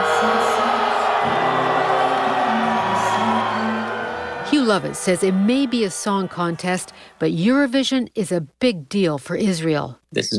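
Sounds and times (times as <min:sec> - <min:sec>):
audience booing at a song contest: 0:00.0 - 0:07.5
speech: 0:04.7 - 0:10.3.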